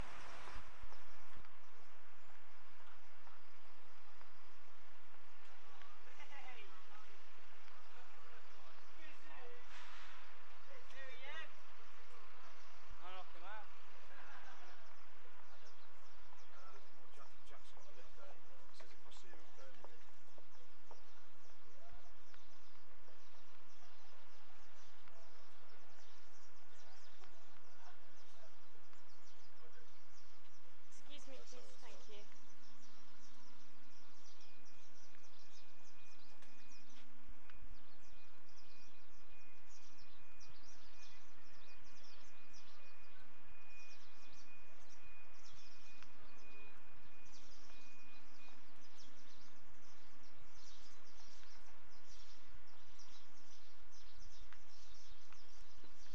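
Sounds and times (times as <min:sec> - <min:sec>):
birds at a bus station at dusk: 0:00.0 - 0:56.1.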